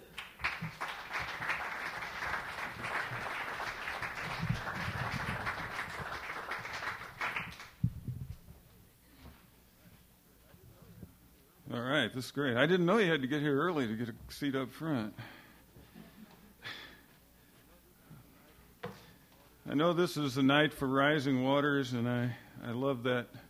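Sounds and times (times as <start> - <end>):
audience applause welcoming a reader at an evening reading event: 0.0 - 7.8
speech: 12.2 - 15.3, 19.8 - 23.4.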